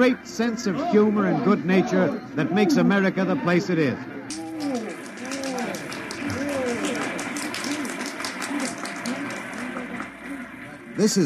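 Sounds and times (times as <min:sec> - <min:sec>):
speech: 0:00.0 - 0:04.4, 0:11.0 - 0:11.2
happy crowd laughing along Fifth Avenue: 0:04.4 - 0:10.7.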